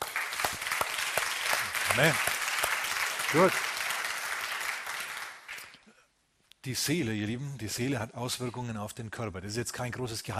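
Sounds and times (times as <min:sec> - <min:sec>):
audience clapping: 0:00.0 - 0:05.9
speech: 0:02.0 - 0:02.3, 0:03.3 - 0:03.7, 0:06.6 - 0:10.3.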